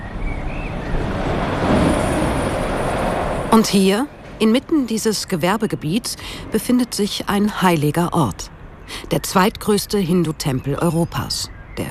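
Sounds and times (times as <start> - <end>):
truck rushing past along the road: 0.0 - 4.4
speech: 3.5 - 11.8.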